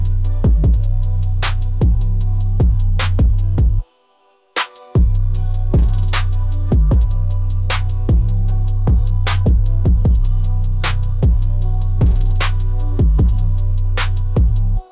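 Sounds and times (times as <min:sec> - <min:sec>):
bass music: 0:00.0 - 0:03.8, 0:05.0 - 0:14.8.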